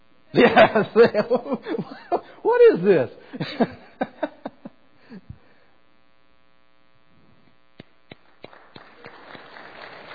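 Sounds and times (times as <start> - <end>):
steady electrical hum: 0.0 - 10.1
speech: 0.3 - 3.8
laughter: 0.4 - 2.4, 3.4 - 4.8
scattered claps: 7.8 - 10.1
light audience applause: 8.1 - 10.1.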